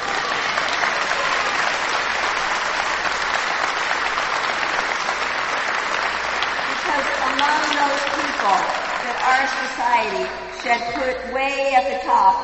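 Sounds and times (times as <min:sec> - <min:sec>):
audience applauding teachers: 0:00.0 - 0:10.7
speech: 0:08.4 - 0:12.4.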